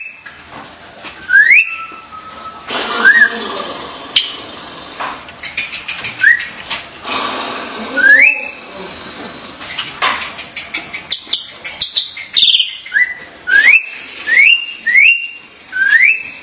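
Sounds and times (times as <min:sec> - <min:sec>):
starling singing whistles, chips and squeaks: 0:01.2 - 0:04.5, 0:05.4 - 0:06.6, 0:07.9 - 0:08.8, 0:10.5 - 0:16.4.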